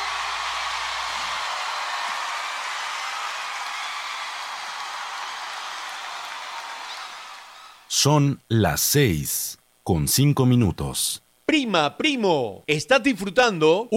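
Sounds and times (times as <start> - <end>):
loud applause: 0.0 - 7.9
speech: 7.9 - 13.9.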